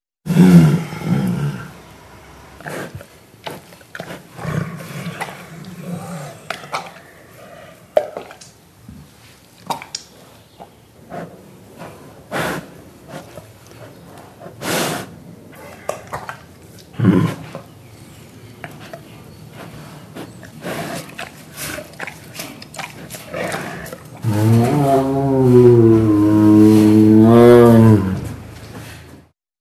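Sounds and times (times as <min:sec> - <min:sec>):
Siberian tiger roaring: 0:00.3 - 0:08.0, 0:11.1 - 0:17.7, 0:20.4 - 0:28.5.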